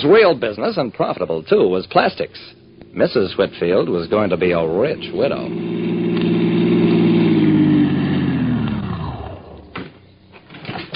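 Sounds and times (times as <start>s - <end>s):
speech: 0.0s - 6.0s
car engine arriving and parking: 0.0s - 10.9s
faint clunks and rustles: 9.7s - 10.9s.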